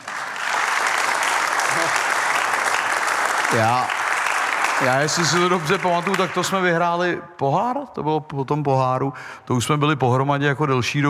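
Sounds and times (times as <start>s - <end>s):
audience applause: 0.0s - 6.9s
speech: 3.5s - 4.0s, 4.8s - 11.0s.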